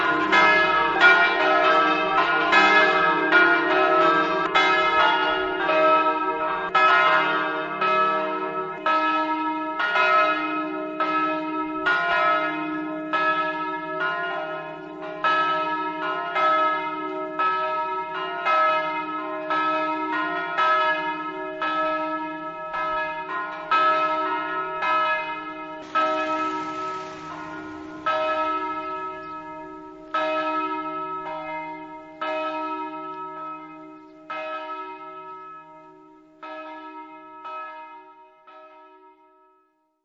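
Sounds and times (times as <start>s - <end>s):
bells ringing: 0.0s - 39.7s.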